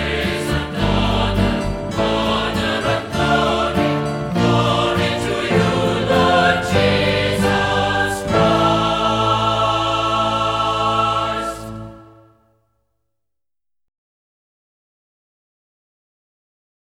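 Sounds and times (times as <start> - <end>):
Celtic-style Lenten Gospel Acclamation: 0.0 - 12.3.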